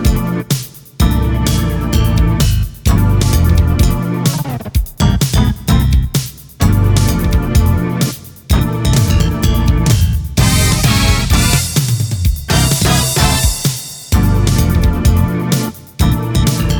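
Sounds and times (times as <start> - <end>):
Roland SC-88: 0.0 - 16.7.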